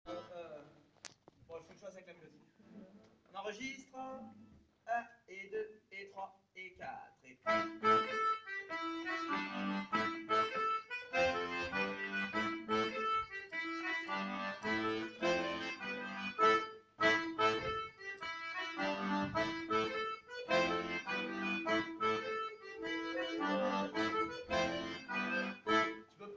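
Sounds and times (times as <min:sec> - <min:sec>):
diatonic accordion: 0:00.1 - 0:00.4, 0:07.5 - 0:26.2.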